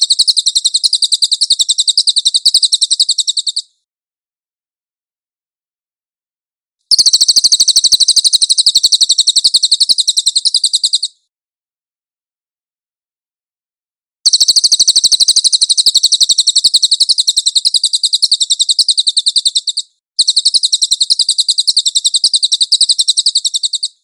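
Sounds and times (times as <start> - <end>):
cililin bird singing shrill trill: 0.0 - 3.8, 6.9 - 11.3, 14.3 - 24.0.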